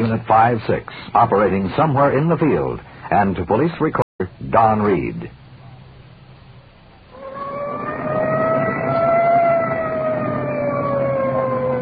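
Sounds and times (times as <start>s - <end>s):
engine and traffic rumble: 0.0s - 11.8s
speech: 0.1s - 5.4s
police siren wailing: 7.1s - 11.8s.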